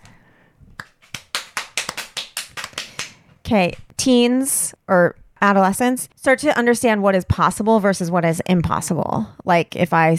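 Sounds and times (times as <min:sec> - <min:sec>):
small round of applause: 0:00.8 - 0:03.2
speech: 0:03.5 - 0:10.1.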